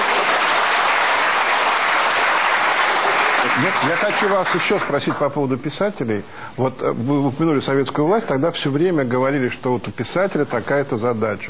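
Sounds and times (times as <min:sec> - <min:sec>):
audience applause: 0:00.0 - 0:05.2
speech: 0:03.6 - 0:11.4.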